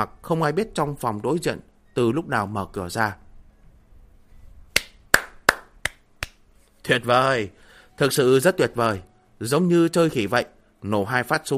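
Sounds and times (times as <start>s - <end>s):
speech: 0.0s - 3.2s, 6.9s - 11.5s
man clapping his hands: 4.8s - 6.4s.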